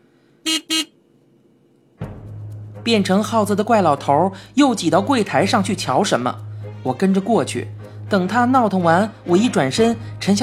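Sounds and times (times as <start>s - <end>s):
car horn beeps: 0.5s - 1.0s
speech: 2.8s - 10.4s.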